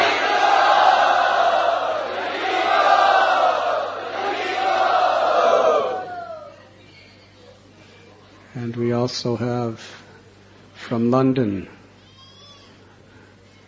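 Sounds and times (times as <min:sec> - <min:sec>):
crowd cheering loudly to welcome guests at Radha Gopinath: 0:00.0 - 0:06.6
speech: 0:09.1 - 0:10.1, 0:10.9 - 0:11.8.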